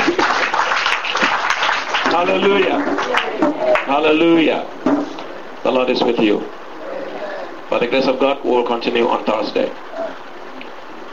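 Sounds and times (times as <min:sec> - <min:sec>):
crowd clapping: 0:00.0 - 0:04.2
speech: 0:02.2 - 0:05.0, 0:05.6 - 0:06.6, 0:07.7 - 0:09.9.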